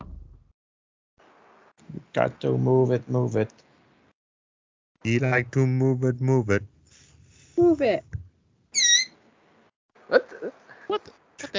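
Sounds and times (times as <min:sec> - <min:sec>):
speech: 0:02.1 - 0:03.7, 0:05.0 - 0:06.7, 0:07.6 - 0:08.1, 0:10.1 - 0:11.5
mouse squeaking: 0:08.8 - 0:09.2.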